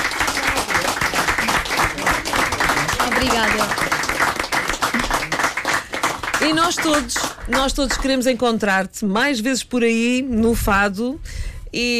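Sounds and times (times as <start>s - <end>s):
audience applause for a fado singer in a fado house: 0.0s - 8.0s
speech: 3.2s - 4.0s, 6.4s - 11.9s.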